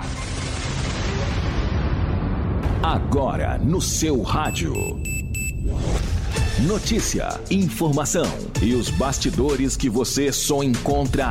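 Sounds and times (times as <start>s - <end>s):
bomb explosion sound effect in a radio news jingle: 0.0s - 4.1s
speech: 2.8s - 6.0s, 6.6s - 11.3s.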